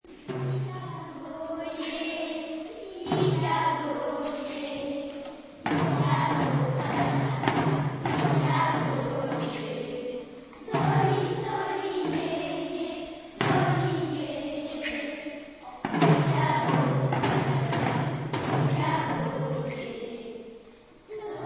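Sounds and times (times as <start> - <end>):
chanting: 0.3 - 21.4.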